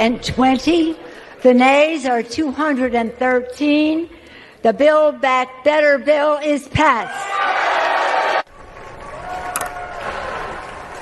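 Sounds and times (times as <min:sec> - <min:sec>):
speech: 0:00.0 - 0:07.7
legislators cheering and applauding after bill passes: 0:07.3 - 0:11.0.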